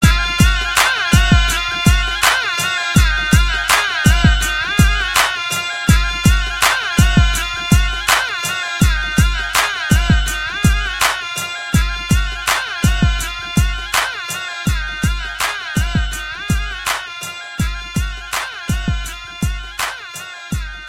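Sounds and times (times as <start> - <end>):
Punjabi hip hop music: 0.0 - 20.8.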